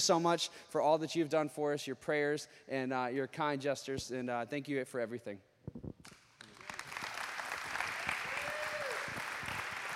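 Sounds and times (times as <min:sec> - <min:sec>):
speech: 0:00.0 - 0:05.8
audience clapping: 0:06.0 - 0:09.9.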